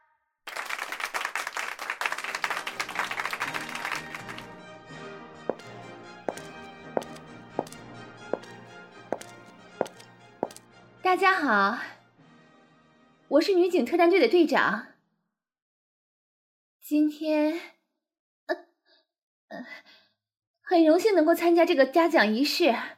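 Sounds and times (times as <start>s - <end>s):
audience applause at award ceremony: 0.5s - 4.5s
speech: 11.1s - 11.9s, 13.3s - 14.9s, 16.9s - 17.7s, 20.8s - 22.9s.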